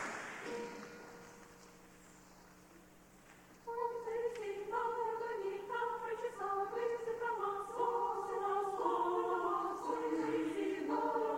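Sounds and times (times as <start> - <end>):
symphonic choir singing in Kiev: 3.7 - 11.3.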